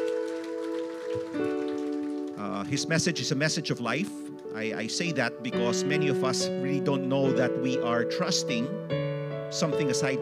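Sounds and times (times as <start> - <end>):
crowd applause: 0.0 - 2.7
speech: 1.2 - 1.6, 2.4 - 10.2.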